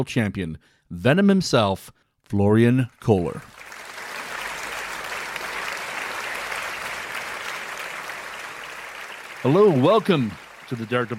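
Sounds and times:
speech: 0.0 - 3.7, 9.4 - 11.1
talk-show audience applause welcoming a pool trick-shot artist: 3.5 - 11.1.

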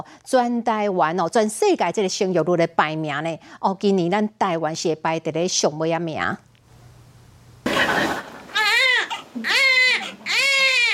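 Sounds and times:
speech: 0.0 - 6.5
newborn baby crying loudly: 8.5 - 10.9.

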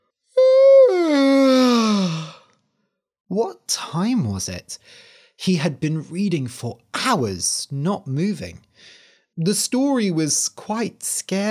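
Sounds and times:
person yawning: 0.4 - 2.6
speech: 3.3 - 11.4.

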